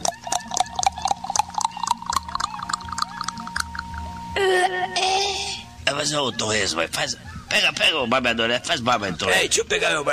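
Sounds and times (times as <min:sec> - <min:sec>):
shot of cachaça glugging from a bottle into a small glass: 0:00.0 - 0:04.1
bright tonal sound: 0:00.0 - 0:05.9
speech: 0:06.0 - 0:10.1.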